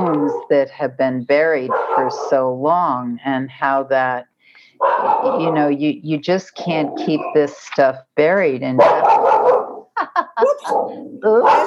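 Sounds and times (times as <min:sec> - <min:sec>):
speech: 0:00.3 - 0:09.2, 0:10.6 - 0:11.6
dog barking and yipping: 0:01.7 - 0:02.3, 0:04.8 - 0:05.5, 0:08.8 - 0:09.8, 0:10.6 - 0:11.6.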